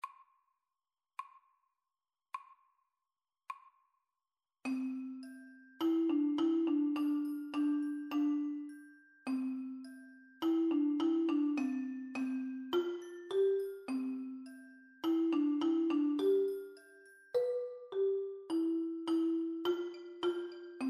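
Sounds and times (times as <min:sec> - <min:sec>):
featured marimba: 0:04.7 - 0:20.8.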